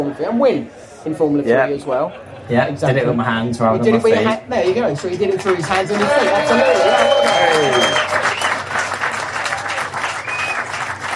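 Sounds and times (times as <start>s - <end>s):
speech: 0.1s - 8.0s
applause: 4.7s - 11.1s.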